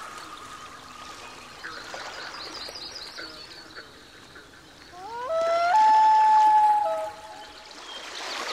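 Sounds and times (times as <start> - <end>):
loon crying: 5.0 - 7.4.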